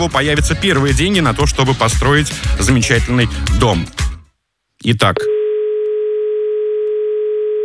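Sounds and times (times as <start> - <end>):
speech: 0.0 - 4.0, 4.8 - 5.4
telephone dial tone: 5.4 - 7.6.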